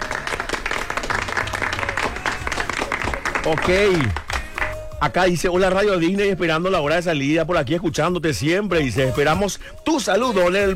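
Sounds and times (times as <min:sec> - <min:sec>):
applause: 0:00.0 - 0:05.0
speech: 0:03.4 - 0:04.2, 0:05.0 - 0:10.7.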